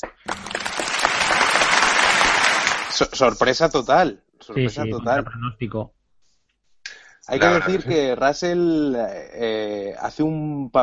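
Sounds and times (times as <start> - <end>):
applause: 0.0 - 3.1
speech: 3.0 - 6.0, 7.3 - 10.8
laughter: 4.6 - 5.5, 7.3 - 8.2.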